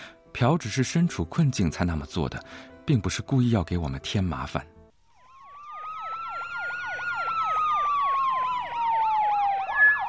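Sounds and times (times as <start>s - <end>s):
speech: 0.4s - 4.8s
police car siren: 5.2s - 10.0s.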